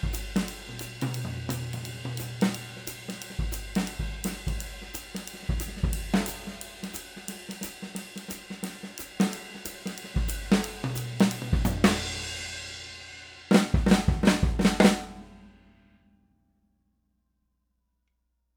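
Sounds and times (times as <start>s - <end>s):
birch snare drum 5.5x14: 0.0s - 12.4s, 13.5s - 15.4s.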